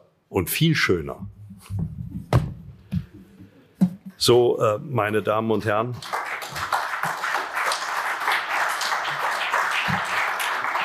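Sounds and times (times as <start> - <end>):
speech: 0.3 - 1.8, 4.2 - 6.2
audience applause: 6.0 - 10.8.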